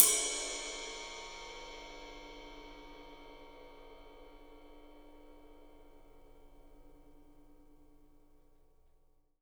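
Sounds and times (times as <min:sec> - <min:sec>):
ride cymbal: 0:00.0 - 0:06.8.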